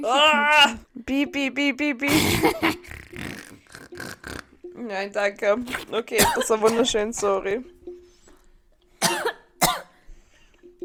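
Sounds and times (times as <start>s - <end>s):
speech: 0.0s - 3.0s, 4.0s - 7.8s
faint throat clearing: 2.1s - 4.5s, 5.7s - 6.9s, 9.0s - 10.0s
harsh coughing from choking on saliva: 2.1s - 4.6s, 5.7s - 7.0s, 9.0s - 10.0s
quiet breathing: 7.9s - 9.0s, 10.0s - 10.8s.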